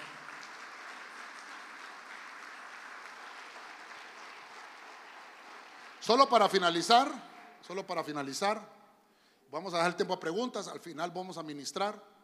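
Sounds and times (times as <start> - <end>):
audience clapping loudly: 0.0 - 8.0
speech: 6.0 - 8.8, 9.5 - 12.1.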